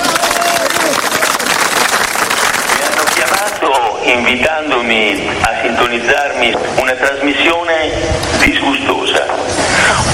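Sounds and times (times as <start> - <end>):
crowd clapping: 0.0 - 3.7
speech: 4.1 - 10.1.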